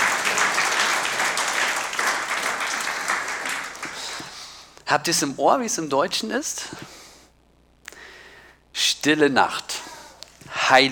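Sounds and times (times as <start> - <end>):
audience applause: 0.0 - 4.3
speech: 4.9 - 7.0, 9.0 - 9.8, 10.7 - 10.8.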